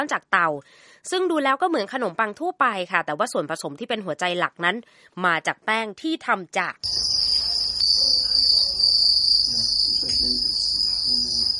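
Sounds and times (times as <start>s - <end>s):
speech: 0.0s - 7.2s
crickets chirring: 6.8s - 11.5s.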